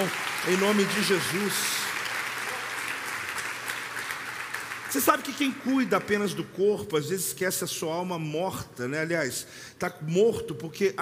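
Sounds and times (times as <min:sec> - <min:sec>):
speech: 0:00.0 - 0:01.8, 0:04.9 - 0:11.0
audience applause: 0:00.0 - 0:06.5.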